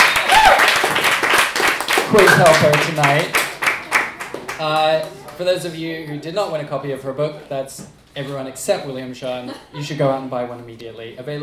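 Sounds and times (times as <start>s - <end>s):
person whooping: 0.0s - 0.8s
crowd applauding: 0.0s - 5.6s
speech: 2.1s - 3.4s, 4.6s - 11.4s.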